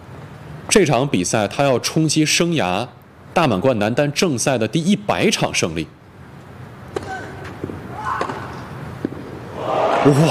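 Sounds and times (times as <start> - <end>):
speech: 0.7 - 6.0, 10.1 - 10.2
court noise during a Grand Slam men's singles match: 6.8 - 10.2
tennis ball struck on a backhand return of serve: 6.9 - 9.4.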